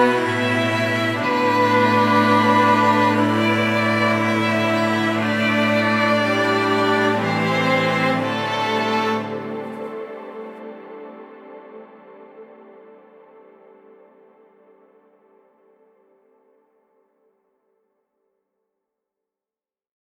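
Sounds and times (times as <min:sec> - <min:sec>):
solo string section in C: 0:00.0 - 0:11.2.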